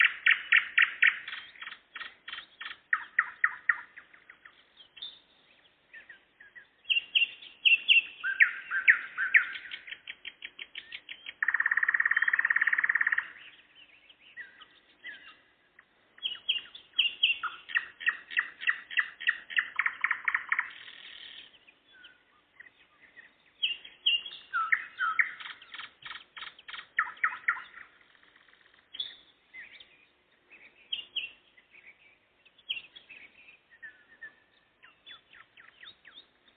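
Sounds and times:
Nightingale singing: 0.0 - 36.5.

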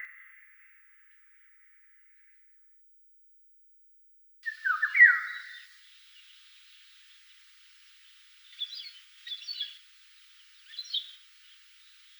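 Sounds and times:
Eurasian golden oriole whistle: 4.5 - 12.1.

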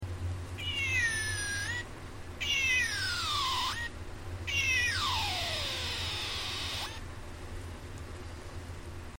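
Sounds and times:
low steady hum: 0.0 - 9.1
cat meowing: 0.6 - 1.8, 2.4 - 3.9, 4.5 - 7.0.

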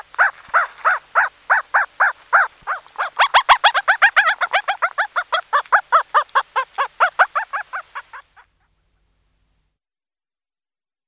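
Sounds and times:
dog yelping: 0.2 - 8.8.

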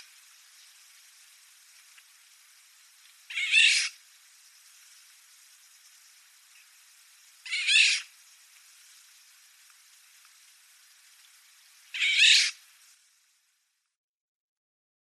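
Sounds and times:
oriole song of slurred whistled phrases: 3.3 - 4.0, 7.5 - 8.1, 12.0 - 12.6.

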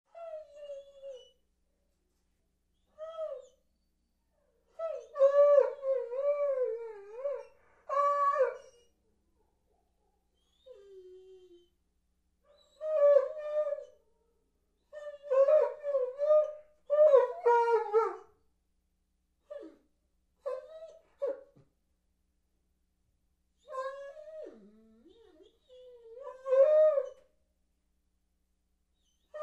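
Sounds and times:
Dobermann dog howling and whining: 0.1 - 1.3, 4.7 - 8.9, 10.5 - 11.7, 12.6 - 14.0, 14.9 - 18.3, 23.6 - 27.2, 29.0 - 29.4.

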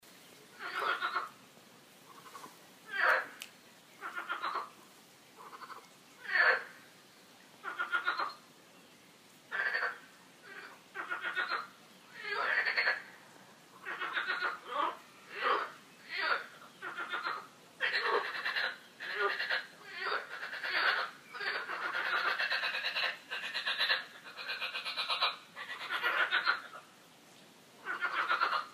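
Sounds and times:
frogs croaking: 0.5 - 1.4, 2.0 - 7.0, 7.6 - 8.5, 9.5 - 27.0, 27.8 - 28.7.

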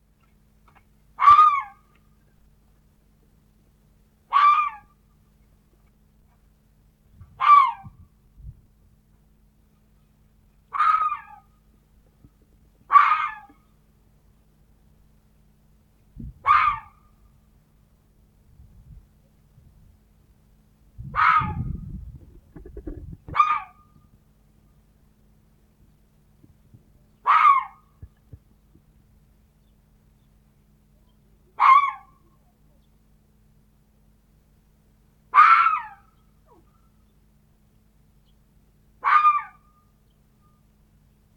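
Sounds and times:
fox barking: 1.2 - 1.9, 4.3 - 4.9, 7.4 - 8.0, 10.7 - 11.5, 12.9 - 13.6, 16.4 - 17.0, 21.1 - 21.7, 23.3 - 23.9, 27.2 - 27.9, 31.6 - 32.3, 35.3 - 36.8, 39.0 - 39.7.

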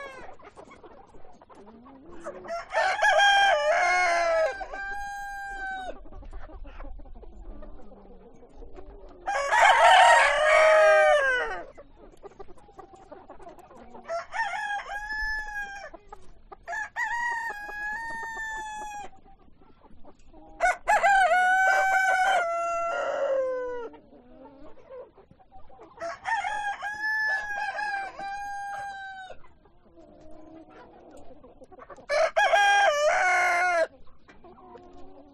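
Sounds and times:
hens clucking: 0.0 - 35.3
rooster crowing: 2.5 - 5.9, 9.3 - 11.7, 14.1 - 15.8, 20.6 - 23.9, 26.0 - 29.4, 32.1 - 33.9.

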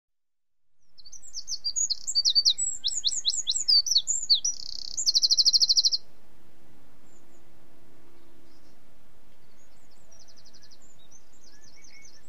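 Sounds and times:
songbird twittering: 0.8 - 6.1, 8.1 - 12.2.

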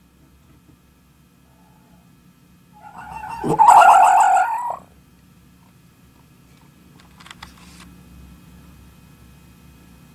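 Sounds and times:
fox wailing cry: 2.8 - 4.8.

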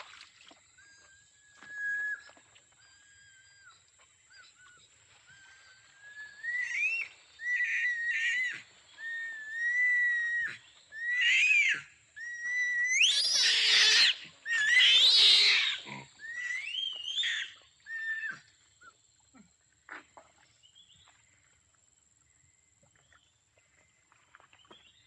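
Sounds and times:
orangutan calls: 1.0 - 18.5.

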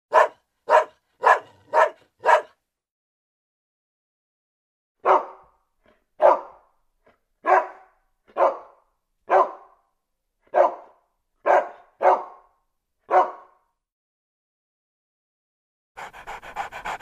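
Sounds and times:
dog barking: 0.1 - 2.6, 5.0 - 5.6, 6.2 - 6.7, 7.4 - 9.9, 10.5 - 13.7.

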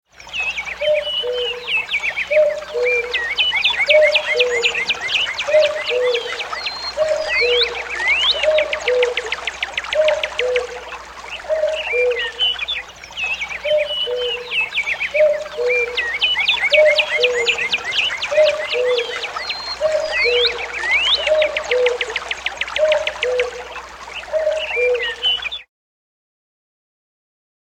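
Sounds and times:
songbirds trilling and whistling: 0.1 - 25.7
common cuckoo calling: 0.2 - 25.7.

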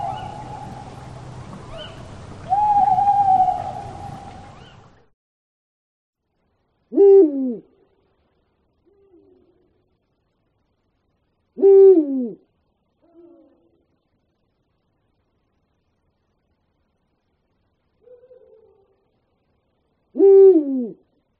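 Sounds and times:
Eurasian eagle-owl giving deep falling hoots: 0.0 - 4.8, 6.9 - 7.7, 11.6 - 12.4, 20.2 - 21.0.

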